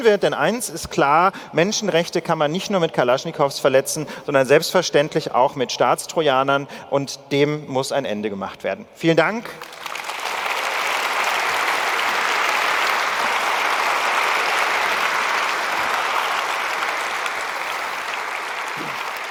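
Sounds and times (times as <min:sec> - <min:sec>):
speech: 0:00.0 - 0:09.8
audience applause: 0:09.6 - 0:19.2.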